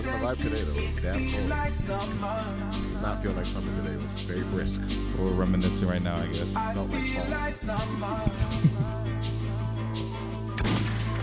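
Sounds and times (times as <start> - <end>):
speech: 0.0 - 10.8
laughter: 7.7 - 9.3
gunshot sound effect: 10.6 - 11.2.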